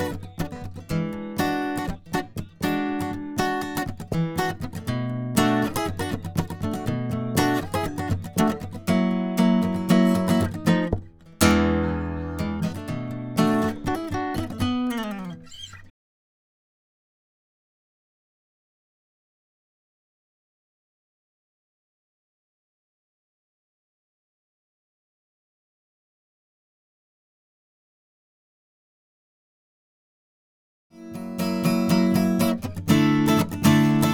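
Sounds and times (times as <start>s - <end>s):
guitar: 0.0s - 15.9s, 30.9s - 34.1s.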